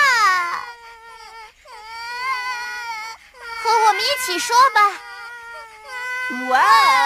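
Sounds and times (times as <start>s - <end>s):
voice imitating loud baby crying: 0.0s - 1.3s, 3.6s - 7.0s
speech: 4.1s - 5.1s, 6.3s - 7.0s.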